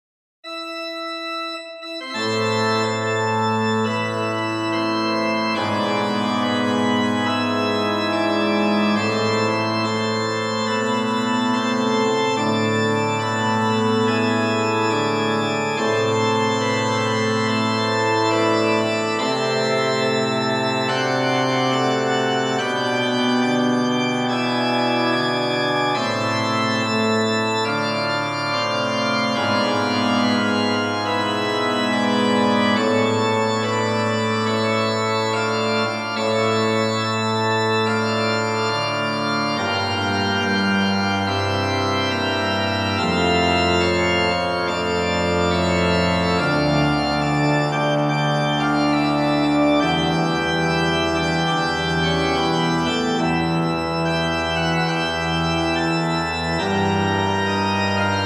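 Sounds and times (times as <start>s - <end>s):
organ playing in plein jeu registration: 0.4s - 58.2s.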